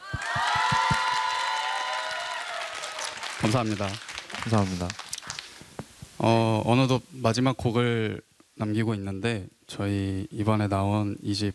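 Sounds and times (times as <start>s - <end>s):
shrill cheering: 0.0s - 4.6s
audience applause: 0.0s - 5.6s
speech: 3.4s - 5.0s, 6.2s - 11.5s.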